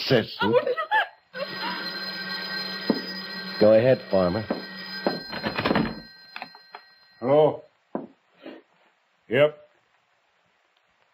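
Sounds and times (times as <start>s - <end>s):
speech: 0.1s - 0.8s, 3.6s - 4.6s, 9.3s - 9.6s
old telephone bell ringing: 1.4s - 7.3s.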